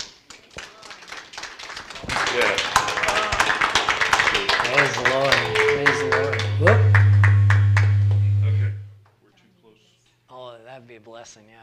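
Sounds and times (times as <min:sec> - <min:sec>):
audience clapping: 0:00.0 - 0:08.9.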